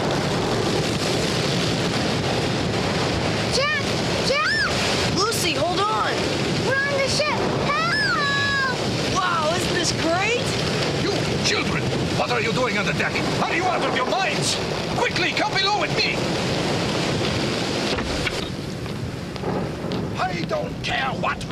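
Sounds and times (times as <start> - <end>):
storm waves and wind surging around a ship: 0.0 - 21.5
water crashing: 0.0 - 21.5
voices shouting: 3.5 - 9.6
speech: 12.4 - 16.6, 20.5 - 21.5.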